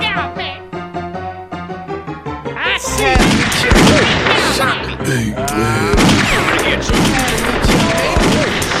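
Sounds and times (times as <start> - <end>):
excited voices: 2.6 - 8.7
gunshots: 3.0 - 4.8, 5.8 - 8.7.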